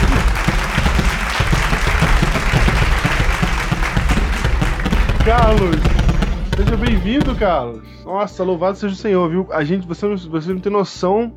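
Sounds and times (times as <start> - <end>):
applause sound effect: 0.0 - 6.8
speech: 5.3 - 6.0, 6.6 - 11.3.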